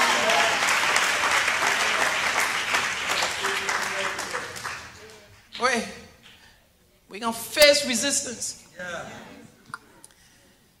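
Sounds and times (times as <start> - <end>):
audience clapping: 0.0 - 6.4
speech: 7.2 - 9.3.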